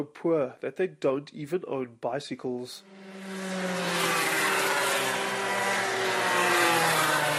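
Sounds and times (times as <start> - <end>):
speech: 0.0 - 3.7
go-karts racing around a track: 2.8 - 7.3.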